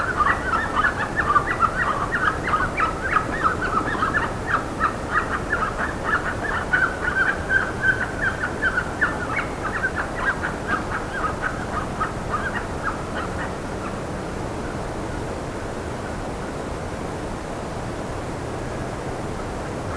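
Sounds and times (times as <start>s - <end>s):
flock of birds calling: 0.0s - 14.8s, 19.6s - 19.9s
low rumble and hiss: 0.0s - 19.9s.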